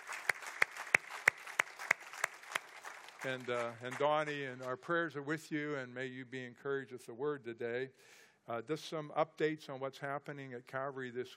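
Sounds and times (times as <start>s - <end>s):
audience applause: 0.0s - 4.2s
sharp bright claps: 0.0s - 4.7s
speech: 3.2s - 11.3s.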